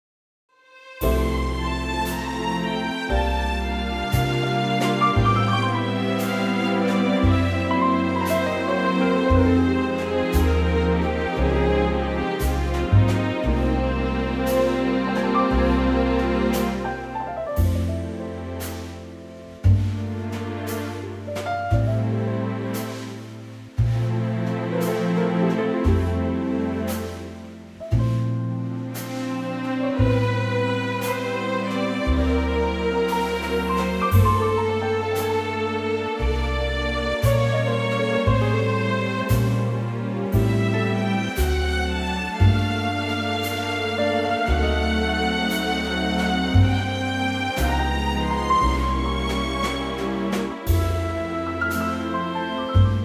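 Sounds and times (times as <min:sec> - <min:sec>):
orchestra playing: 0:01.0 - 0:53.0.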